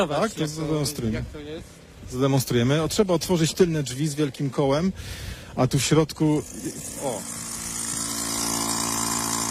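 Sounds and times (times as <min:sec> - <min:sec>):
speech: 0:00.0 - 0:07.4
broadcast van mast extension machine droning: 0:06.3 - 0:09.4.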